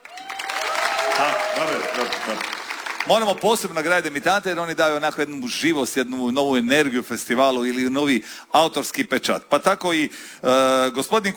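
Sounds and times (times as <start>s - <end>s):
music festival audience applause for a debuting composer: 0.0s - 4.7s
speech: 2.0s - 11.3s.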